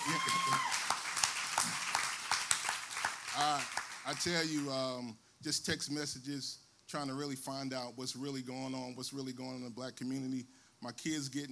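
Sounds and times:
audience applause: 0:00.0 - 0:04.7
speech: 0:03.4 - 0:11.5.

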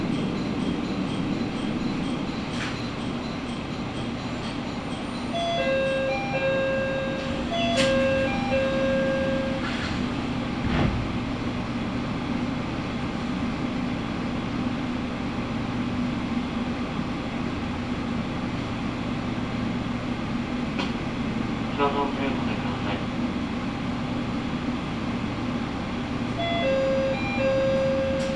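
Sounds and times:
short chiming melody: 0:00.0 - 0:09.8, 0:26.4 - 0:28.3
Matsuura Railway train engine drone and rumble: 0:00.0 - 0:28.3.

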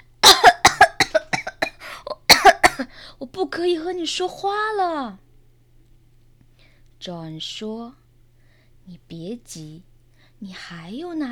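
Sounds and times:
person coughing: 0:00.2 - 0:02.9
speech: 0:03.2 - 0:05.2, 0:07.0 - 0:08.0, 0:08.9 - 0:11.3.

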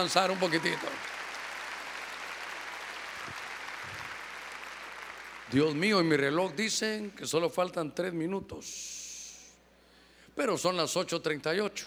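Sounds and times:
speech: 0:00.0 - 0:01.2, 0:05.5 - 0:09.0, 0:10.4 - 0:11.8
loud audience applause: 0:00.0 - 0:05.6.

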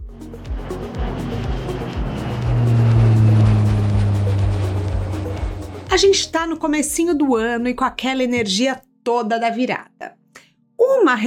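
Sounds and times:
small jet aircraft taking off: 0:00.0 - 0:06.6
speech: 0:06.0 - 0:10.2, 0:10.9 - 0:11.2.

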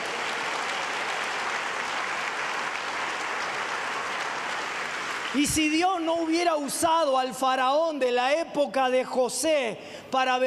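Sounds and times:
crowd applause: 0:00.0 - 0:05.8
speech: 0:05.3 - 0:10.4.

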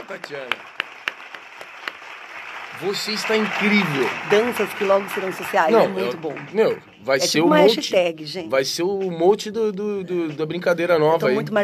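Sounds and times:
applause sound effect: 0:00.0 - 0:07.3
speech: 0:00.1 - 0:00.8, 0:02.7 - 0:11.6.

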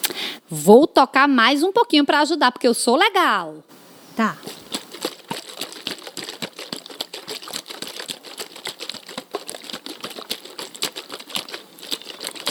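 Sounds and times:
speech: 0:00.5 - 0:04.6
water shaken in plastic bottle: 0:03.7 - 0:12.5.

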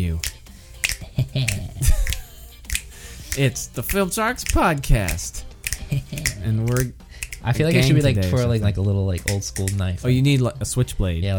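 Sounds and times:
finger snapping: 0:00.2 - 0:07.5, 0:09.2 - 0:09.8
speech: 0:01.4 - 0:01.6, 0:03.4 - 0:11.3.

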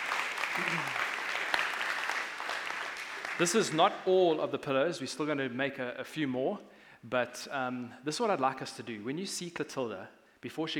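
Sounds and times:
audience applause: 0:00.0 - 0:03.8
speech: 0:00.6 - 0:01.0, 0:03.4 - 0:10.7.

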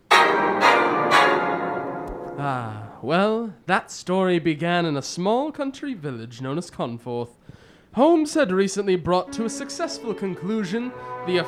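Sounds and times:
tolling church bell: 0:00.0 - 0:03.0
speech: 0:02.4 - 0:11.4.

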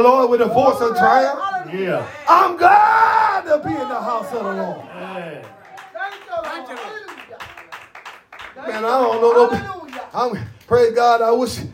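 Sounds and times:
speech: 0:00.0 - 0:07.1, 0:08.6 - 0:11.7
audience clapping hands in the church: 0:04.4 - 0:10.7.

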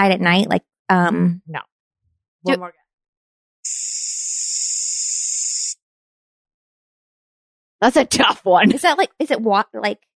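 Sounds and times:
speech: 0:00.0 - 0:01.7, 0:02.4 - 0:02.8, 0:03.6 - 0:04.1, 0:07.8 - 0:10.1
aerosol spray can spraying: 0:03.7 - 0:05.8.

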